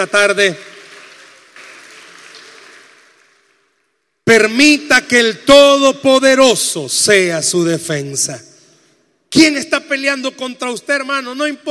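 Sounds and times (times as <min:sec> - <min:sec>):
speech: 0:00.0 - 0:00.7, 0:04.3 - 0:08.5, 0:09.3 - 0:11.6
audience applause: 0:00.0 - 0:03.8.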